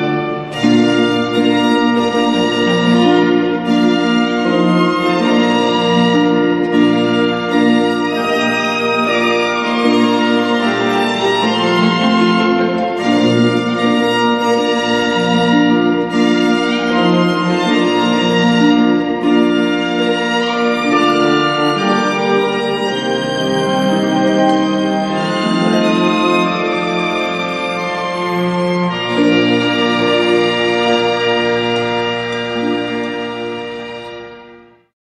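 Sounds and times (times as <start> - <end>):
harp: 0.0 - 34.8
cello: 0.0 - 34.9
organ: 0.0 - 34.9
violin: 0.0 - 34.9.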